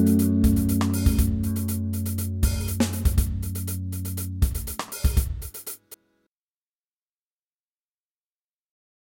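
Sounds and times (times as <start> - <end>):
jazz music: 0.0 - 5.9.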